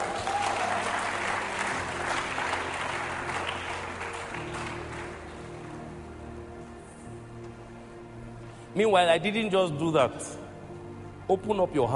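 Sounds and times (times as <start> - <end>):
audience clapping: 0.0 - 5.8
speech: 8.8 - 10.4, 11.3 - 11.9.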